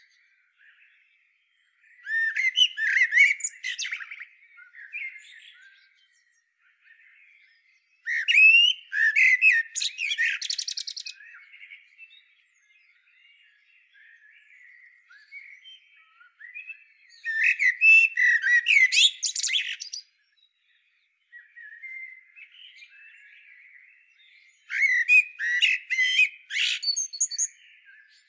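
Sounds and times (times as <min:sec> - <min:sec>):
Eurasian blackbird squawking and warbling: 0:02.1 - 0:04.2, 0:08.1 - 0:11.1, 0:17.3 - 0:20.0, 0:24.7 - 0:27.5.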